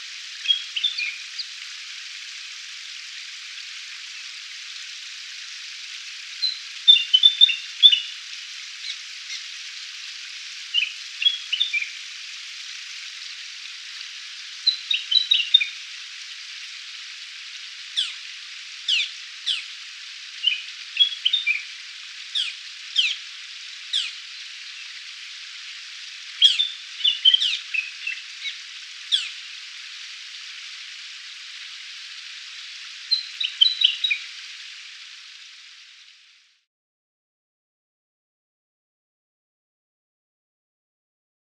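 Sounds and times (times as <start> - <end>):
steady hiss: 0.0 - 36.7
Willie wagtail song: 0.4 - 1.5, 6.4 - 8.2, 10.7 - 12.0, 14.6 - 15.8, 18.0 - 18.2, 20.4 - 21.7, 22.4 - 23.2, 26.4 - 29.4, 33.1 - 34.3.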